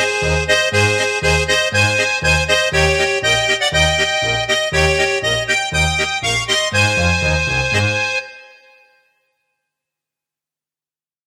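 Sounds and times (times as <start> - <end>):
polka played on accordion: 0.0 - 9.0.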